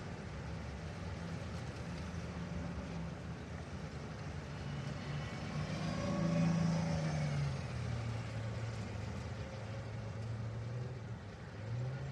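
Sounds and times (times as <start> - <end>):
city ambience: 0.0 - 12.1.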